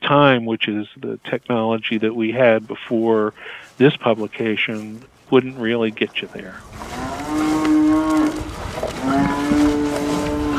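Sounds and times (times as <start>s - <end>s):
speech: 0.1s - 7.0s
calves mooing at a feeding trough: 6.6s - 10.5s.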